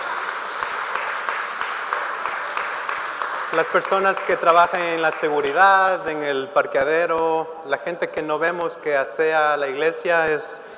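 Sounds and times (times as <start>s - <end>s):
applause: 0.0s - 6.0s
speech: 3.5s - 10.7s.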